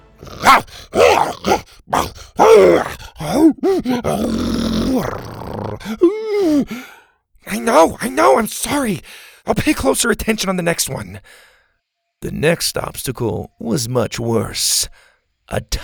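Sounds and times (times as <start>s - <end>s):
angry dinosaur growls: 0.1s - 6.9s
speech: 0.2s - 2.0s, 3.6s - 6.9s, 7.5s - 11.5s, 12.2s - 15.8s.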